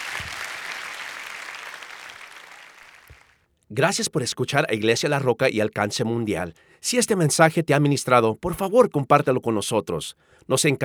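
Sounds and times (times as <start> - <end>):
audience applause: 0.0 - 3.4
speech: 3.7 - 10.8.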